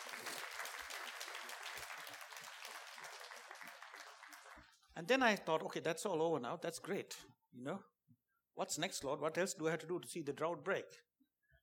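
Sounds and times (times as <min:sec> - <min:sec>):
audience clapping: 0:00.0 - 0:04.8
speech: 0:05.0 - 0:07.9, 0:08.6 - 0:11.1.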